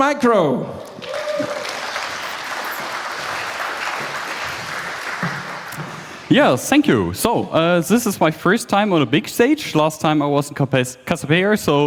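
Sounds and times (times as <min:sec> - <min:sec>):
speech: 0:00.0 - 0:01.6, 0:06.3 - 0:11.8
audience applause: 0:00.8 - 0:06.4.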